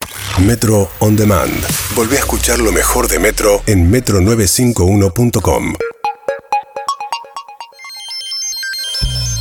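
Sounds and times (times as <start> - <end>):
speech: 0.4 - 5.9
electronic alarm ringing: 5.8 - 9.3.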